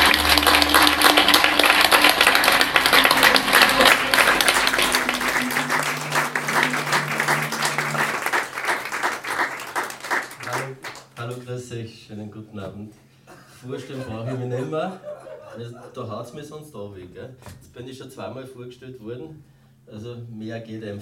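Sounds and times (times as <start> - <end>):
audience applause: 0.0 - 11.2
speech: 11.8 - 21.0
laughter: 13.7 - 16.1.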